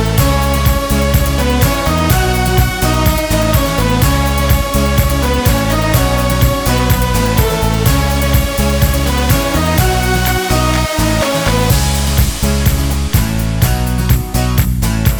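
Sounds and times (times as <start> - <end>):
upbeat uplifting corporate background music: 0.0 - 15.1.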